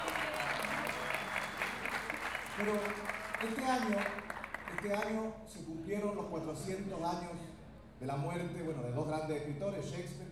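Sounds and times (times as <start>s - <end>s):
crowd applause at a gathering of payadores in Lo Barnechea, Chile: 0.0s - 5.2s
speech: 2.6s - 10.2s.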